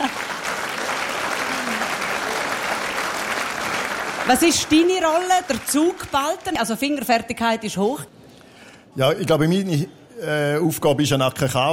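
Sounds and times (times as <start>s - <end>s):
crowd applauding: 0.0s - 7.1s
speech: 4.3s - 8.2s, 9.0s - 11.7s.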